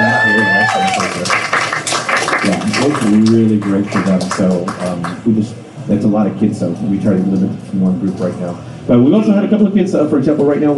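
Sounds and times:
audience applause: 0.0s - 5.2s
speech: 2.8s - 10.7s.

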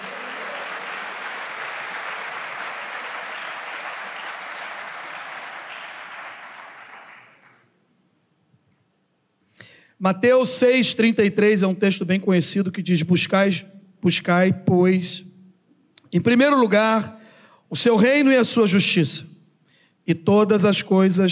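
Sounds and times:
audience applause: 0.0s - 7.7s
speech: 10.0s - 15.3s, 16.1s - 19.4s, 20.0s - 21.3s.

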